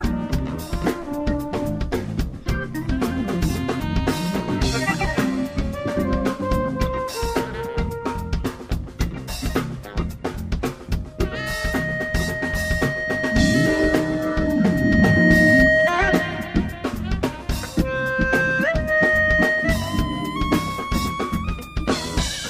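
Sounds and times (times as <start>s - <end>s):
improvised music jam: 0.0s - 22.4s.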